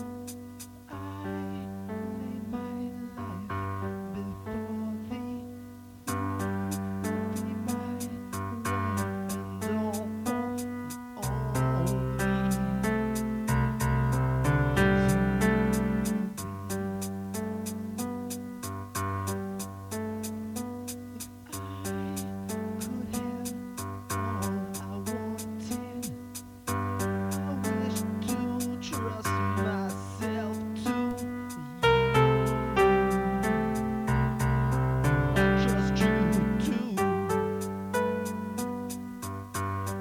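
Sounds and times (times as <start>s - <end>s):
piano: 0.0s - 40.0s
person singing: 0.9s - 16.8s, 21.2s - 26.3s, 27.0s - 37.7s.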